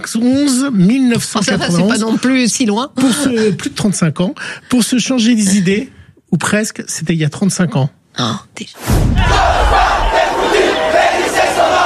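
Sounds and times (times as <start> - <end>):
speech: 0.0 - 9.8
large protest crowd shouting: 9.2 - 11.8.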